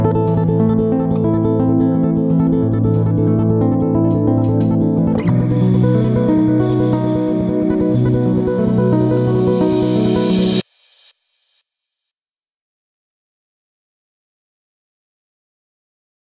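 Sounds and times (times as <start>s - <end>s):
instrumental mix: 0.0s - 10.6s.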